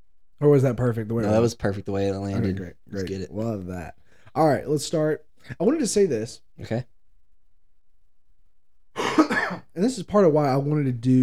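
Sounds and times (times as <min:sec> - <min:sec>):
speech: 0:00.4 - 0:06.9, 0:09.8 - 0:11.2
person coughing: 0:09.0 - 0:09.7.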